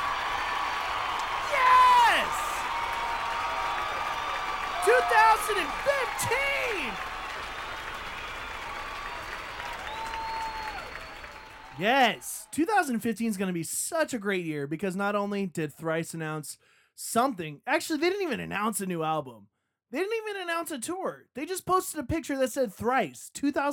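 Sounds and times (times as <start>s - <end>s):
audience clapping: 0.0s - 12.4s
speech: 5.0s - 7.1s, 11.8s - 23.7s.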